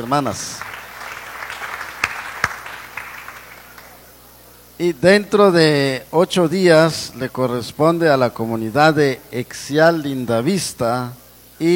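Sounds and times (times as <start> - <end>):
speech: 0.0 - 0.7, 4.8 - 11.7
crowd applause: 0.0 - 4.1.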